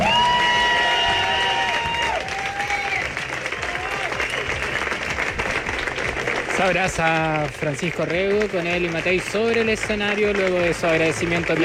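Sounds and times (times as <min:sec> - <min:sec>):
rising whoops: 0:00.0 - 0:05.0
cheering voices: 0:00.0 - 0:11.6
large audience clapping: 0:00.0 - 0:11.6
speech: 0:06.6 - 0:11.6.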